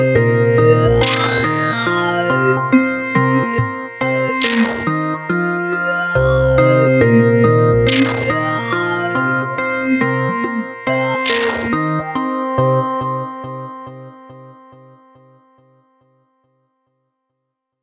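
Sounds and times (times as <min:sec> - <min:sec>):
downtempo synthesizer music: 0:00.0 - 0:13.0.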